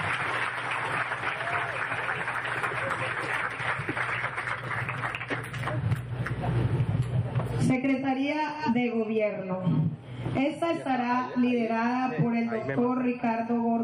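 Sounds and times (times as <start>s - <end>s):
audience applause: 0.0s - 6.5s
speech: 7.7s - 13.8s.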